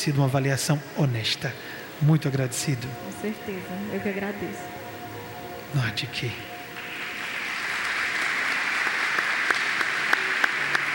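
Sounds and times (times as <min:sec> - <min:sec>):
speech: 0:00.0 - 0:04.8, 0:05.7 - 0:06.5
audience applause: 0:06.8 - 0:10.9.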